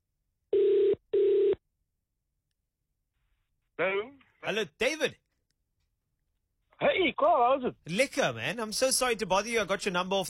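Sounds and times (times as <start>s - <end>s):
ringback tone of an outgoing telephone call: 0.5s - 1.6s
speech: 3.8s - 5.2s, 6.8s - 10.2s.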